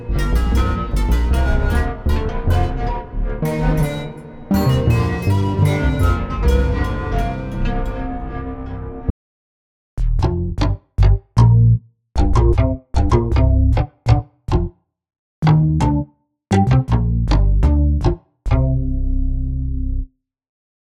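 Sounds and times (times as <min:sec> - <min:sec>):
bass preset sounds: 0:00.0 - 0:09.1, 0:10.0 - 0:14.7, 0:15.4 - 0:20.1.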